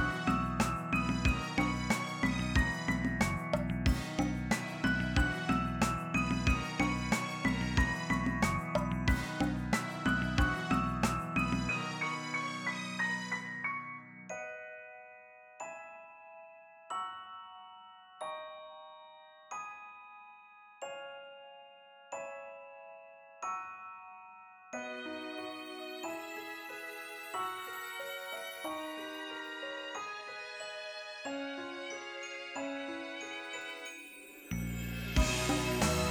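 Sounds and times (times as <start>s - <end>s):
off vocal instrumental music: 0.0s - 15.2s, 24.8s - 36.0s.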